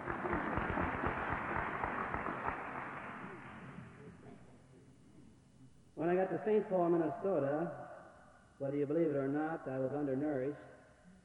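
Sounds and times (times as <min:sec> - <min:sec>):
audience clapping: 0:00.0 - 0:04.0
speech: 0:06.3 - 0:07.9, 0:08.6 - 0:10.7.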